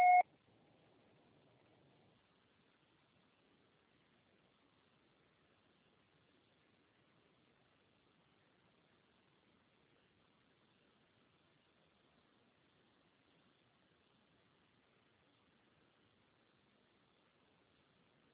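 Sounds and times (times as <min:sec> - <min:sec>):
answering machine beep: 0:00.0 - 0:00.2
faint low hiss: 0:00.0 - 0:18.3.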